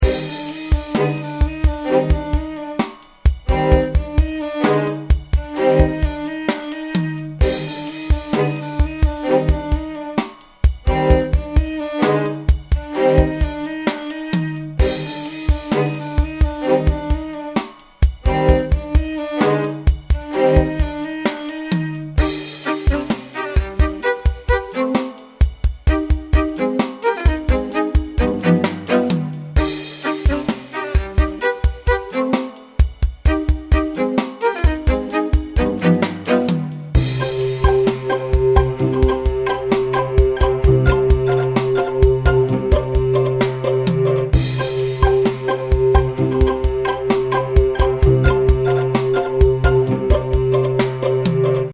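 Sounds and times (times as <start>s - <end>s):
music beat: 0.0s - 51.7s.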